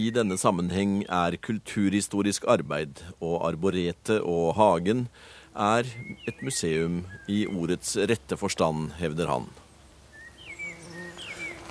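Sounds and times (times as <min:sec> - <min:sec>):
speech: 0:00.0 - 0:09.6
large early bumblebee buzzing in a museum garden: 0:10.1 - 0:11.6.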